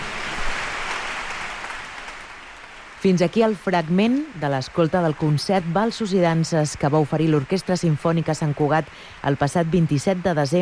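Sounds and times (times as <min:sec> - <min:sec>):
audience applause after concert piece: 0:00.0 - 0:10.6
speech: 0:03.0 - 0:10.6.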